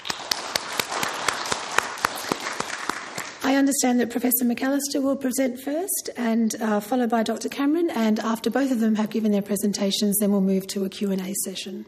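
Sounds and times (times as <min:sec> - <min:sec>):
audience applause welcoming two speakers to a lecture: 0:00.0 - 0:03.5
speech: 0:03.5 - 0:11.8.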